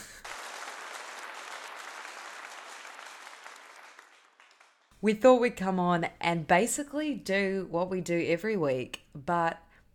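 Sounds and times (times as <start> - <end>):
applause sound effect: 0.0 - 5.0
speech: 5.0 - 9.6.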